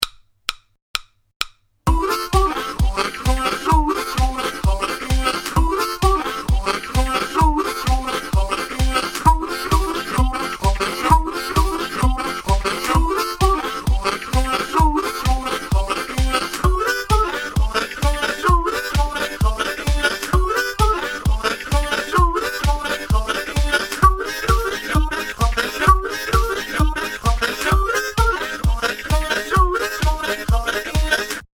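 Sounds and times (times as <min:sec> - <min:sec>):
cup rhythm: 0:00.0 - 0:31.4.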